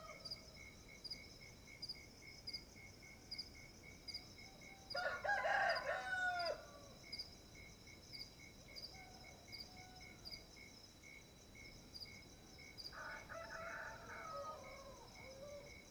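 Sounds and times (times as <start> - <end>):
rooster crowing at dawn at a sugar mill: 4.9 - 6.8, 12.9 - 15.7.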